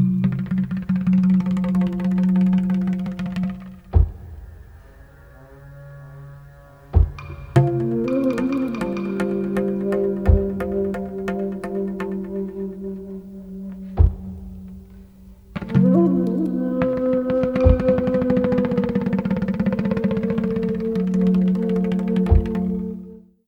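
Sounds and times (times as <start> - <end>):
drums: 0.0 - 5.4, 6.8 - 12.5, 13.8 - 23.1.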